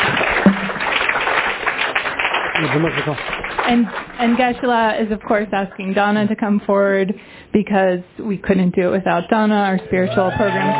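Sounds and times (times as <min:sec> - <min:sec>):
audience applause: 0:00.0 - 0:04.6, 0:10.0 - 0:10.7
speech: 0:02.6 - 0:10.7.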